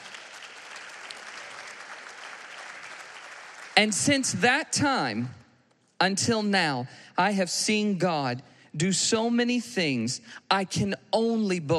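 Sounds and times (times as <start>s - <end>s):
audience applause: 0.0s - 4.0s
speech: 3.8s - 5.4s, 6.0s - 11.7s.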